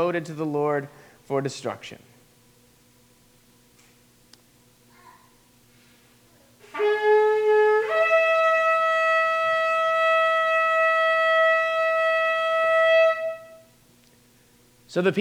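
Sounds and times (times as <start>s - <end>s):
speech: 0.0s - 2.1s, 14.9s - 15.1s
shofar blown by a priest: 6.6s - 13.8s.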